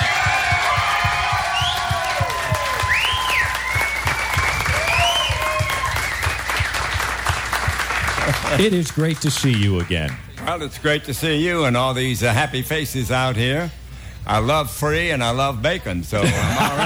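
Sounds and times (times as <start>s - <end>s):
whistles and whoops: 0.0s - 6.8s
audience applause welcoming a baseball broadcaster: 0.0s - 10.2s
speech: 8.6s - 16.8s
laughter: 16.2s - 16.8s.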